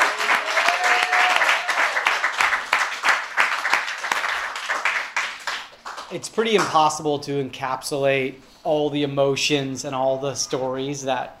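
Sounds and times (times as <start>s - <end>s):
audience applause for storytellers: 0.0s - 6.1s
speech: 6.1s - 11.3s.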